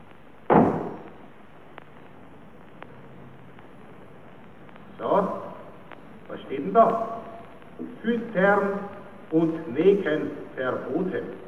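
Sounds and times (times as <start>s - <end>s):
door slamming shut: 0.5s - 1.1s
speech: 6.6s - 7.1s, 8.0s - 11.4s.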